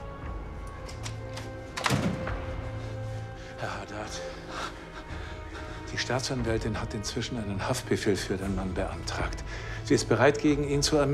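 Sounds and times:
door shutting: 0:00.7 - 0:02.7
speech: 0:05.9 - 0:11.1.

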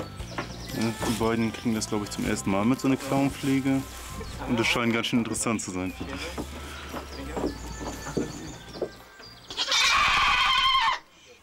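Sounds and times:
speech: 0:00.8 - 0:06.8
goats bleating in loud protest: 0:09.5 - 0:11.1.

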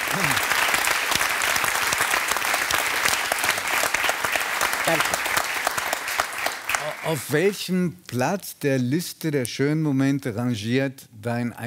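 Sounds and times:
audience applause: 0:00.0 - 0:07.5
speech: 0:04.9 - 0:05.2, 0:07.0 - 0:11.6.

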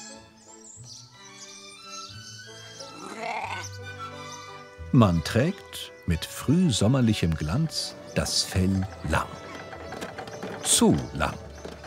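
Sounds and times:
Ouessant sheep bleating: 0:03.0 - 0:04.5
speech: 0:04.9 - 0:09.4, 0:10.7 - 0:11.4.

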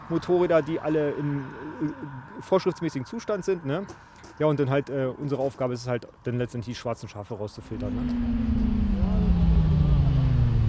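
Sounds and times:
speech: 0:00.1 - 0:09.1
loud motorcycle engine running at a roadside traffic check: 0:07.6 - 0:10.6.

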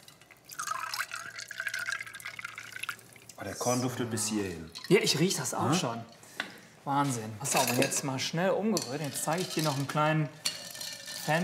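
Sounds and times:
soda streaming into a cocktail glass: 0:00.0 - 0:03.4
speech: 0:03.4 - 0:06.2, 0:06.8 - 0:10.4, 0:11.2 - 0:11.4.

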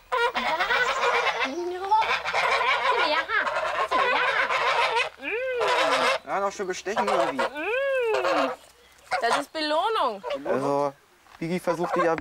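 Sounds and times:
flock of geese honking: 0:00.0 - 0:10.7, 0:11.6 - 0:12.1
speech: 0:06.4 - 0:07.6, 0:08.2 - 0:08.6, 0:09.2 - 0:12.1.

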